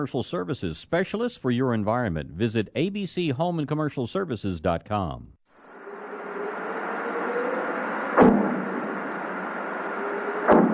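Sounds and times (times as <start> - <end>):
speech: 0.0 - 5.4
rushing hiss: 5.6 - 10.7
underwater bomb blasts set by fishermen to scare sea lions: 8.2 - 8.8, 10.5 - 10.7.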